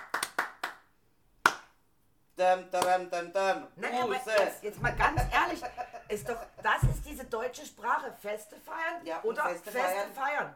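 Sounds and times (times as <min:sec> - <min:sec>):
clapping applause: 0:00.0 - 0:00.9
speech: 0:02.4 - 0:10.5
laughter: 0:04.8 - 0:07.1.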